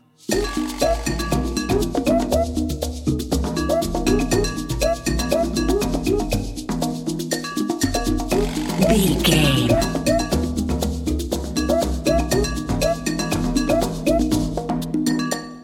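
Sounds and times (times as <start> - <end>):
jungle percussion playing: 0.2 - 15.6.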